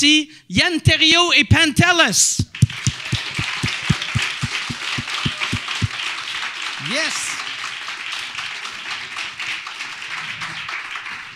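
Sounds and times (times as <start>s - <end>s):
speech: 0.0s - 2.9s, 6.8s - 7.3s
low rhythmic thump: 2.4s - 5.9s
audience applause: 2.6s - 11.3s.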